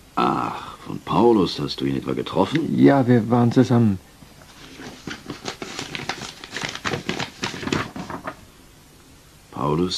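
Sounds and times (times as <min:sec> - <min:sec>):
speech: 0:00.9 - 0:04.1, 0:09.7 - 0:09.9
letter paper being unfolded: 0:04.4 - 0:08.4.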